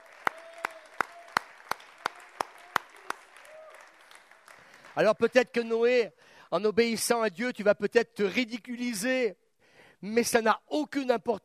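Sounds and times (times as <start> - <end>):
audience applause: 0.0 - 5.3
speech: 5.0 - 9.4, 10.0 - 11.4.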